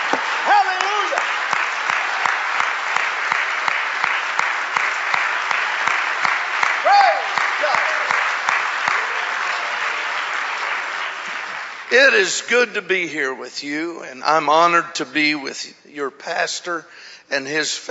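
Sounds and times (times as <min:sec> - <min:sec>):
audience clapping hands: 0:00.0 - 0:12.7
speech: 0:11.9 - 0:17.9.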